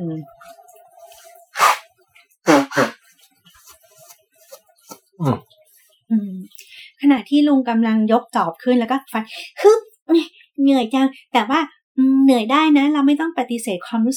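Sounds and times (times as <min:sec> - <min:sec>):
speech: 0:00.0 - 0:00.6, 0:05.2 - 0:05.4, 0:07.3 - 0:14.1
person blowing nose: 0:01.1 - 0:01.8, 0:02.5 - 0:04.6.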